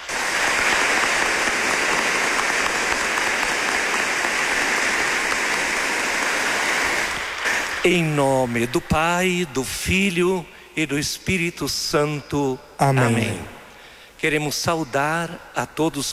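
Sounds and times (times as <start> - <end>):
audience applauding: 0.0 - 7.9
speech: 7.8 - 13.6, 14.2 - 16.1.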